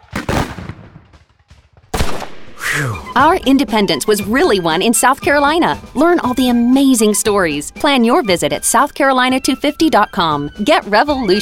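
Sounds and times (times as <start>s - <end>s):
flintlock musket loaded with lead ball and wadding firing: 0.0s - 3.2s
speech: 2.8s - 11.4s.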